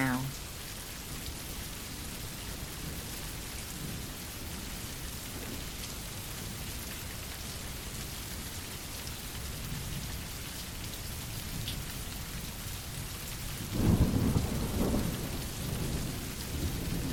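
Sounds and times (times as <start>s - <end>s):
heavy rain: 0.0s - 17.1s
thunder rumbling: 13.8s - 17.1s.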